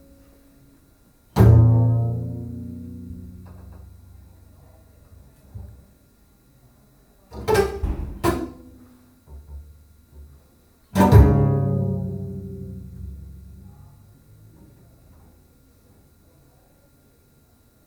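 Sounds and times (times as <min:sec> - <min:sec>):
bass: 0:01.4 - 0:05.9, 0:07.4 - 0:15.3.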